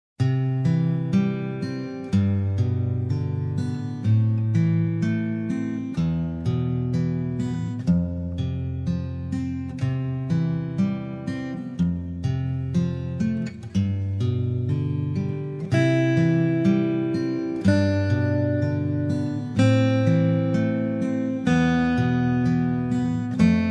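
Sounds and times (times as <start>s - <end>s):
guitar canon: 0.2s - 23.6s.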